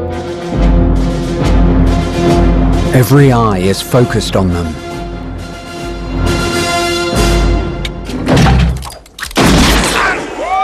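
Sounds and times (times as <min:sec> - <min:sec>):
music: 0:00.0 - 0:09.0
speech: 0:03.0 - 0:04.9
gunshots in a western-style gunfight: 0:08.3 - 0:10.4.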